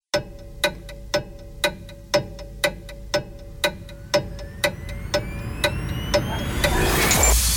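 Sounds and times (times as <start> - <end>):
countdown before the start of a grandiose event: 0.1 - 7.4.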